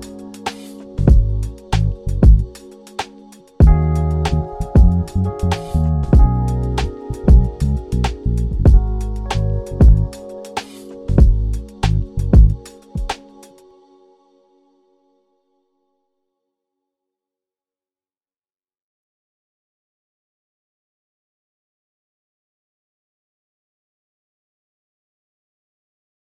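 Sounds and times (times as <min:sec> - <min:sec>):
neo soul R&B music: 0:00.0 - 0:13.6.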